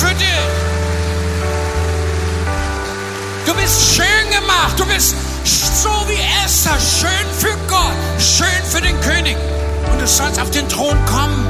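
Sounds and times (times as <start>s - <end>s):
audience applause: 0.0s - 6.0s
speech: 5.8s - 11.4s.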